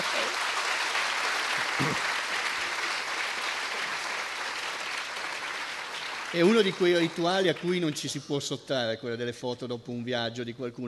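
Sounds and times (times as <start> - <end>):
audience applause: 0.0 - 8.2
laughter: 1.7 - 2.0
speech: 1.8 - 2.2, 6.3 - 10.8.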